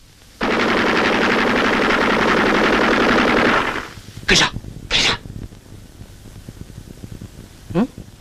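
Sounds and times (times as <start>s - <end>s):
enemy automatic gunfire sound effect in a radio drama: 0.4s - 4.0s
speech: 4.3s - 4.6s.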